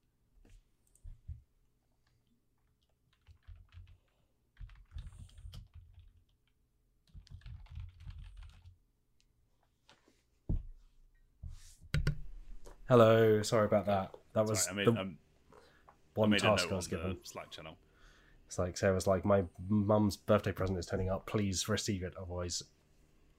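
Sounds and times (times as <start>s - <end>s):
computer keyboard typing: 2.6s - 8.8s
speech: 12.9s - 15.2s, 16.2s - 17.8s, 18.5s - 22.8s.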